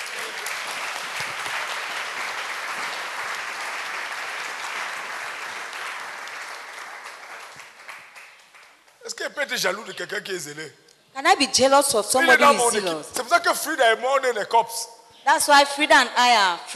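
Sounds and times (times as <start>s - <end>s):
audience applauding: 0.0s - 9.0s
speech: 9.2s - 16.7s.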